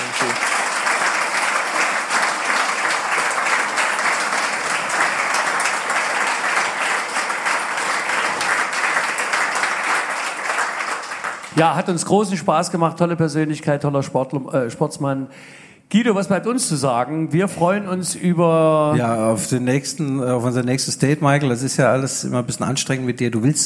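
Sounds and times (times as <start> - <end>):
audience applause: 0.0 - 11.9
speech: 11.6 - 23.6.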